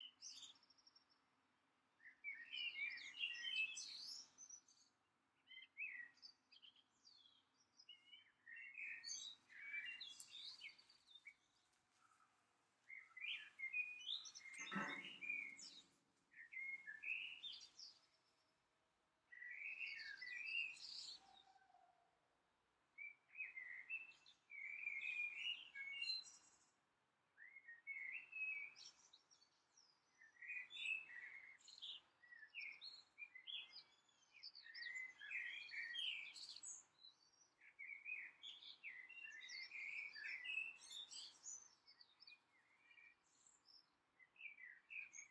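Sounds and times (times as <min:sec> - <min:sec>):
birds in June: 0:00.0 - 0:01.2, 0:02.0 - 0:18.7, 0:19.3 - 0:22.2, 0:23.0 - 0:26.8, 0:27.4 - 0:45.3.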